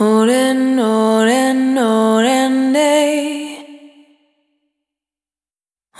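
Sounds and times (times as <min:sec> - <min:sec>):
single voice melodic loops: 0:00.0 - 0:04.2.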